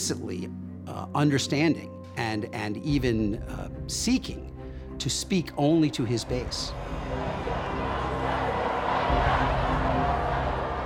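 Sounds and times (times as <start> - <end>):
speech: 0.1 - 7.9
din of protesters on the street: 6.8 - 10.8.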